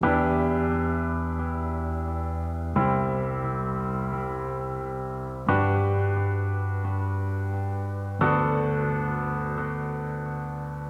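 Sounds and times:
taped piano loop in E minor: 0.0s - 10.8s.

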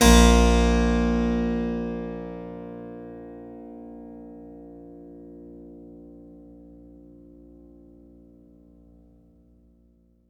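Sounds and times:
Synclavier keys: 0.0s - 2.8s
Synclavier guitars: 0.0s - 8.6s.

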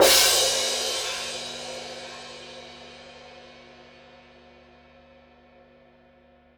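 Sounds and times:
loud orchestral cymbals: 0.0s - 3.8s.

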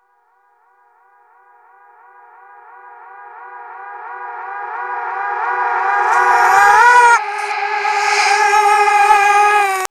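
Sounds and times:
reversed vocals: 4.5s - 9.8s.

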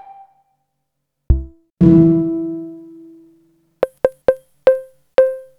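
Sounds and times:
bongos: 1.3s - 2.1s, 3.9s - 5.4s.

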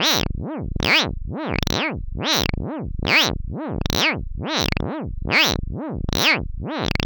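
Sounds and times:
noise modulated by LFO: 0.0s - 7.0s.

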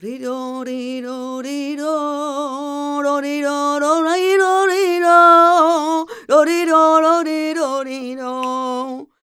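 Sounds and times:
female cantaora singing flamenco vocals: 0.0s - 9.1s.

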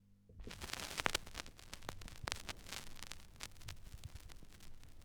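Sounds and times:
turntablism scratching: 0.4s - 4.6s.

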